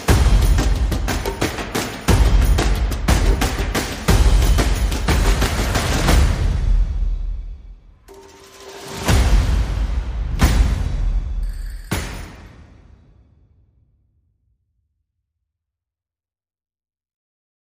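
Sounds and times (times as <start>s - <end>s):
trailer percussion: 0.0s - 13.9s
trailer sound effects: 8.1s - 13.1s.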